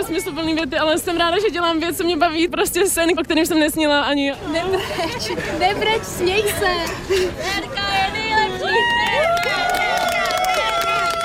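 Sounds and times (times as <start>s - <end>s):
speech: 0.0s - 7.8s
crowd applauding and cheering: 8.7s - 11.2s.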